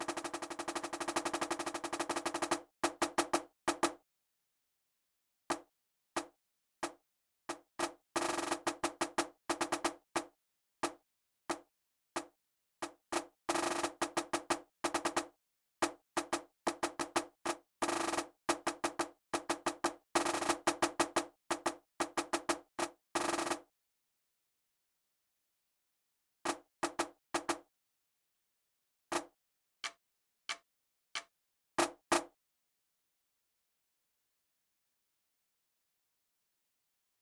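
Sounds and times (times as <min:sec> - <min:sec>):
snare drum: 0:00.0 - 0:04.0, 0:06.2 - 0:11.6, 0:12.2 - 0:23.6, 0:26.5 - 0:27.6, 0:29.1 - 0:30.6, 0:31.2 - 0:32.3.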